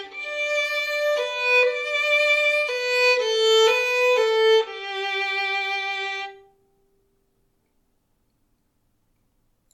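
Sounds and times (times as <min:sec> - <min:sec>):
violin waltz: 0:00.0 - 0:06.5.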